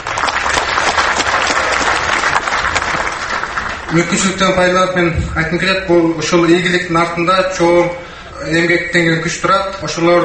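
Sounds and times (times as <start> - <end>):
audience applauding a film award winner at a ceremony: 0.0 - 4.7
speech: 3.9 - 10.2.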